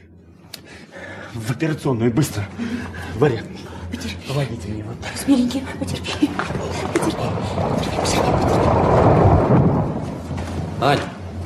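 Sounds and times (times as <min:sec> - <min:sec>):
low drone: 0:00.0 - 0:11.4
speech: 0:01.3 - 0:09.2, 0:10.8 - 0:11.1
thunder from a September storm: 0:05.3 - 0:11.4.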